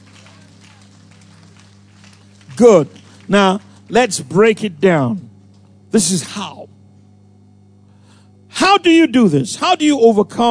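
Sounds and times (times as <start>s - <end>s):
audience clapping hands together: 0.0s - 4.7s
speech: 2.6s - 5.3s, 5.9s - 6.8s, 8.6s - 10.5s.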